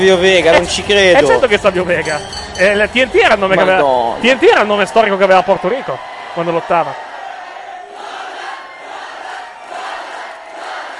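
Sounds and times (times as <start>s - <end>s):
speech: 0.0s - 7.1s
wrestling arena crowd cheering for a wrestler: 3.3s - 10.9s.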